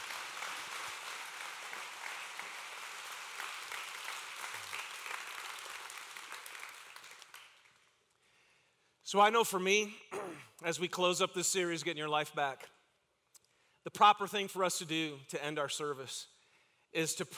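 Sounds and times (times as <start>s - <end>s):
audience applause: 0.0s - 7.8s
speech: 9.1s - 12.7s, 13.8s - 16.3s, 16.9s - 17.3s.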